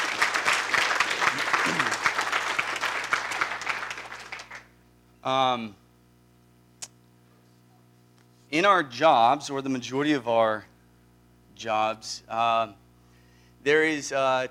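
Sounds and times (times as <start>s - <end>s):
audience applause for veterans: 0.0s - 4.7s
speech: 5.2s - 5.8s, 8.5s - 10.7s, 11.6s - 12.8s, 13.6s - 14.4s.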